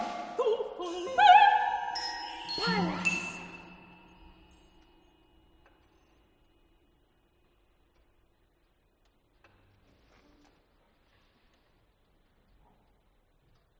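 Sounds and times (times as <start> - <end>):
soprano singing: 0.0 - 3.6.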